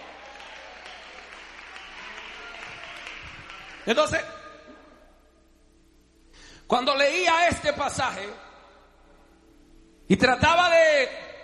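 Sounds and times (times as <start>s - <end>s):
audience applause: 0.0s - 4.0s
speech: 3.9s - 4.4s, 6.7s - 8.4s, 10.1s - 11.2s.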